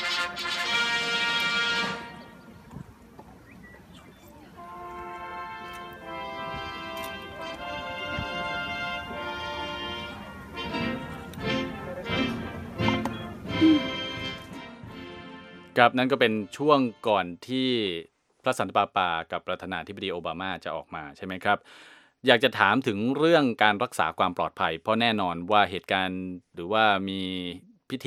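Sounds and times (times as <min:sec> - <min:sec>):
brass band playing a march: 0:00.0 - 0:02.6, 0:04.6 - 0:17.0
murmur of outdoor crowd ambience: 0:00.0 - 0:14.9
speech: 0:15.8 - 0:28.0.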